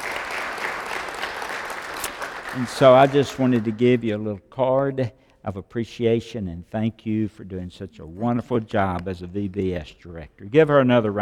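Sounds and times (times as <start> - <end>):
crowd clapping: 0.0 - 4.1
speech: 2.6 - 11.1.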